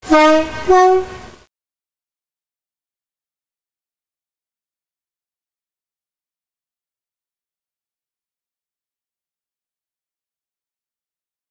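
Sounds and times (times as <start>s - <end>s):
train klaxon: 0.0s - 1.4s.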